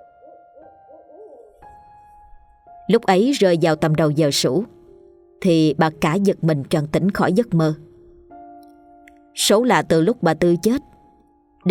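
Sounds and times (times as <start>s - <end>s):
owl hooting at night: 0.0s - 1.6s
speech: 2.9s - 4.8s, 5.4s - 7.9s, 9.4s - 10.9s.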